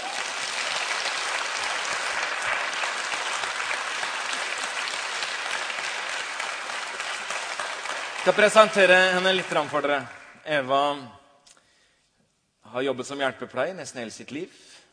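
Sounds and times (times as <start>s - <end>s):
audience applause: 0.0s - 10.4s
speech: 8.2s - 11.2s, 12.7s - 14.7s.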